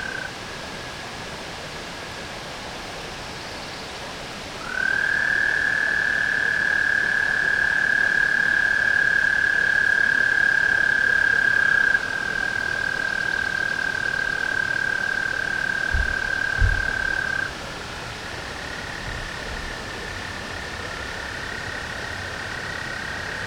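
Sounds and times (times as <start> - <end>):
tree frog trilling: 0.0 - 0.3, 4.6 - 17.6, 18.3 - 23.4
faint low thumps: 15.9 - 17.1.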